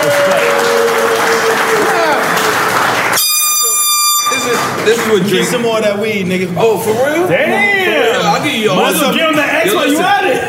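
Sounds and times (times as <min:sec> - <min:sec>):
loud crowd clapping and cheering: 0:00.0 - 0:05.7
air horn blaring: 0:03.1 - 0:04.8
buzzy high-pitched tone: 0:03.2 - 0:04.7
speech: 0:04.9 - 0:10.4.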